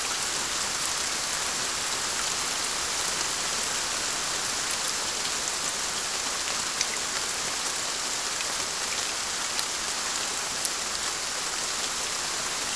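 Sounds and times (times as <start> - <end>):
rain: 0.0 - 12.7.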